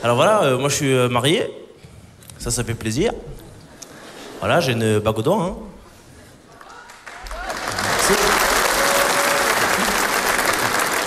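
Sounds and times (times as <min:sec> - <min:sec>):
speech: 0:00.0 - 0:01.6, 0:02.4 - 0:03.5, 0:04.4 - 0:05.8
audience applause at a comedy show: 0:06.5 - 0:11.0.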